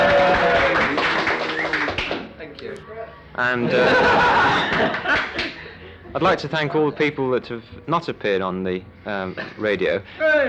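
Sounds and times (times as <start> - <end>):
cheering and clapping: 0.0 - 2.3, 4.0 - 5.6
speech: 3.4 - 4.3, 6.2 - 10.4
laughter: 3.6 - 7.1.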